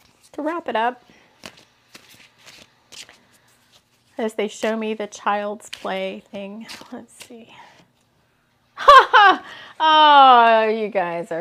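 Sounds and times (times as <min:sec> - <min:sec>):
oracle cards being shuffled and drawn: 0:00.0 - 0:08.1
speech: 0:00.4 - 0:01.2, 0:04.2 - 0:07.7, 0:09.3 - 0:11.4.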